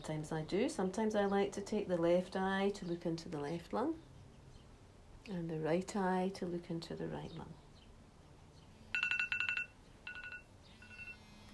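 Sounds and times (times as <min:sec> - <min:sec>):
speech: 0:00.0 - 0:04.1, 0:05.2 - 0:07.6
low hum: 0:00.0 - 0:11.5
timer beeping with high-pitched electronic beeps: 0:09.0 - 0:11.5.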